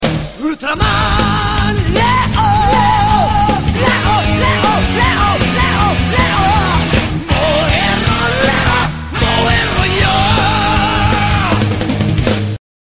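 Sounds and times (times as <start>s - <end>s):
metal music: 0.0s - 12.6s.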